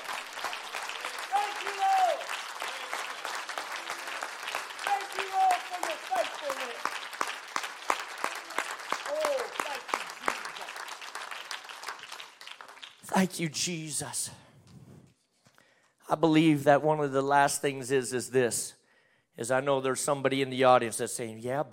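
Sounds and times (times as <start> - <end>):
audience clapping hands: 0.0 - 13.4
voices calling out and cheering: 0.9 - 6.9, 8.2 - 10.0
speech: 13.2 - 14.4, 16.1 - 18.8, 19.4 - 21.7.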